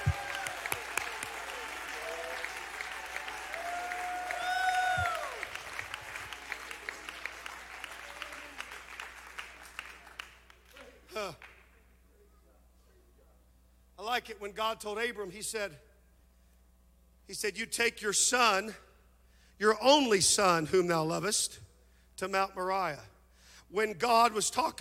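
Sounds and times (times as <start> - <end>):
sharp rising whoop: 0.0 - 0.8, 3.2 - 5.5
shouts and cheering voices: 0.0 - 8.8
audience clapping: 0.0 - 11.7
speech: 14.2 - 15.9, 17.3 - 18.8, 19.6 - 21.6, 22.2 - 23.1, 23.7 - 24.7.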